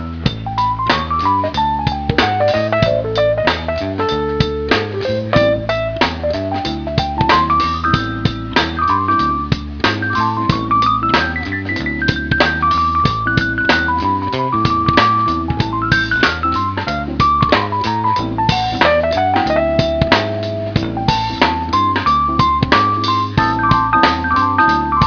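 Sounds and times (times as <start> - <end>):
keyboard playing: 0.0 - 25.0.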